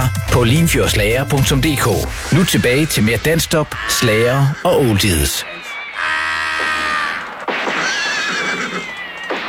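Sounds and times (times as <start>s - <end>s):
speech: 0.1s - 6.2s
horse neighing: 3.6s - 9.3s.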